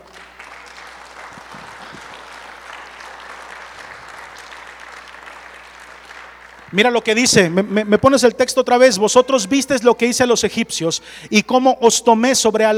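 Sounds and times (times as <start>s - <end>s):
audience applauding: 0.0s - 8.4s
speech: 6.7s - 12.7s.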